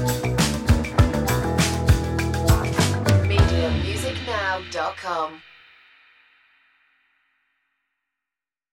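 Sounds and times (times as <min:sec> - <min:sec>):
funk music: 0:00.0 - 0:05.4.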